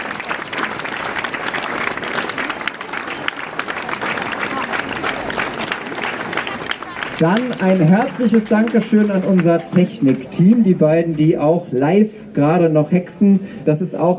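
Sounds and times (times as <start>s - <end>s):
audience applause: 0.0s - 10.6s
speech: 7.2s - 14.1s.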